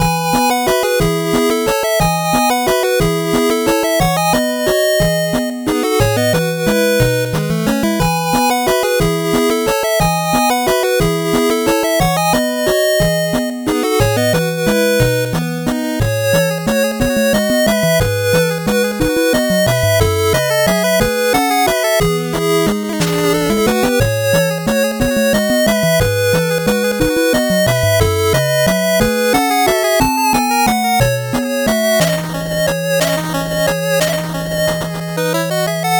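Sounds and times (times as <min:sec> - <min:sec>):
8-bit background music: 0:00.0 - 0:35.9.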